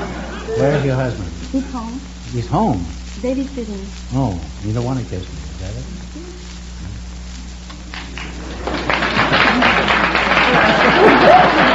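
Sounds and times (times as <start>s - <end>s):
laughter: 0.0s - 1.8s, 8.4s - 11.7s
speech: 0.5s - 6.4s
audience applauding: 7.9s - 11.7s.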